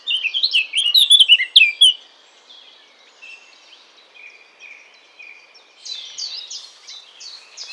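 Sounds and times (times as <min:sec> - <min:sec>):
Eurasian blackcap warbling: 0:00.2 - 0:02.0.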